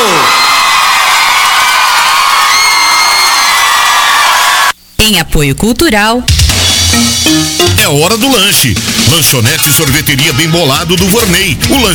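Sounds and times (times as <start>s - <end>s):
audience applause: 0.0s - 4.7s
speech: 5.0s - 11.9s.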